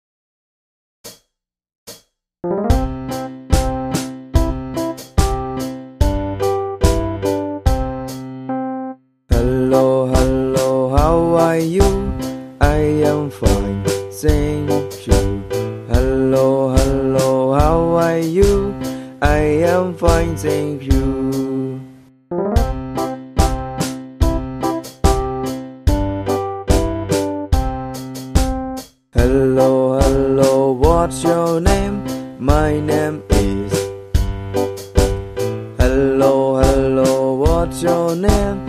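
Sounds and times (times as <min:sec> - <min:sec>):
hello song: 0:02.4 - 0:38.6.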